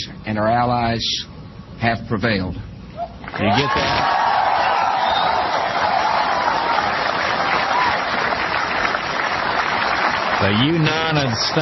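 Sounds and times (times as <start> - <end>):
speech: 0.3 - 2.7, 3.3 - 4.2, 10.4 - 11.6
applause from a large audience: 3.3 - 11.6.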